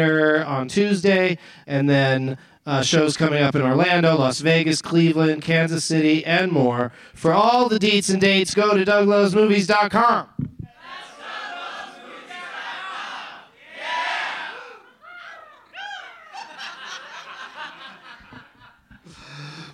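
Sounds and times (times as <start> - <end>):
speech: 0.0 - 10.6
crowd cawing and screeching in imitation of an eagle: 10.7 - 17.0
scattered laughter: 14.8 - 19.2.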